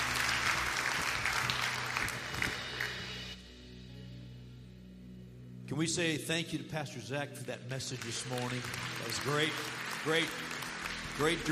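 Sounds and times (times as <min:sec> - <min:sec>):
church audience clapping to welcome new members: 0:00.0 - 0:03.4, 0:07.4 - 0:11.5
speech: 0:05.8 - 0:10.5, 0:11.2 - 0:11.5.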